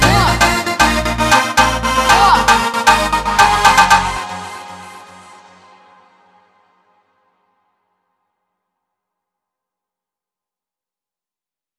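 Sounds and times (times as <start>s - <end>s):
slowed montagem music: 0.0s - 6.4s.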